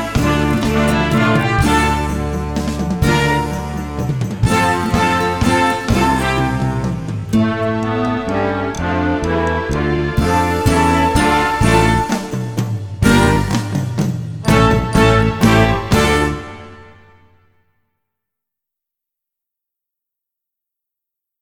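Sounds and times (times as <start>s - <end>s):
C clarinet: 0.0s - 13.8s, 14.4s - 17.4s.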